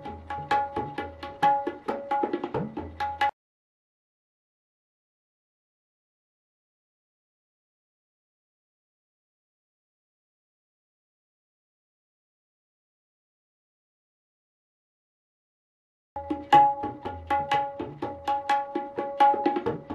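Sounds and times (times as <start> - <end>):
tintal theka in drut laya for kathak: 0.0 - 3.4, 16.2 - 19.9.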